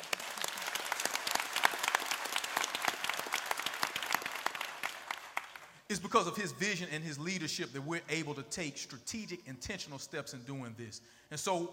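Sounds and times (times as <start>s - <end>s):
audience applause: 0.0s - 5.7s
speech: 5.9s - 11.7s.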